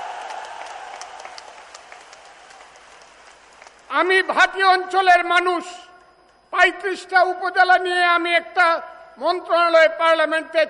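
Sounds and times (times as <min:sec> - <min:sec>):
audience clapping loudly at a political gathering in Kishoreganj: 0:00.0 - 0:04.1
speech: 0:04.0 - 0:05.8, 0:06.6 - 0:10.6.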